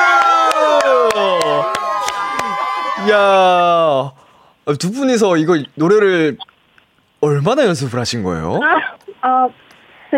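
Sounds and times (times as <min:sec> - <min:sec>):
audience clapping: 0:00.0 - 0:03.2
speech: 0:03.1 - 0:06.5, 0:07.2 - 0:10.1.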